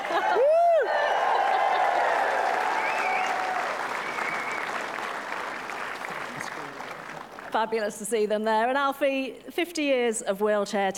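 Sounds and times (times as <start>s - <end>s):
crowd cheering and applauding: 0.0s - 7.6s
speech: 7.6s - 10.9s.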